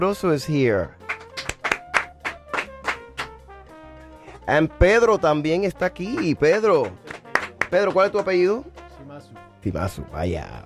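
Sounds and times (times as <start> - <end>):
speech: 0.0 - 1.0, 4.5 - 7.1, 7.7 - 10.6
applause: 1.0 - 3.4, 6.1 - 9.0.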